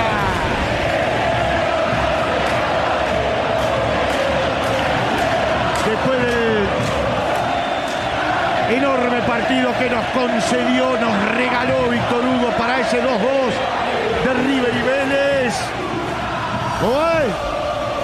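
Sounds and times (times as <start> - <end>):
stadium crowd roaring and shouting: 0.0 - 18.0
whistles: 7.3 - 8.4
speech: 9.8 - 15.9, 16.8 - 17.6.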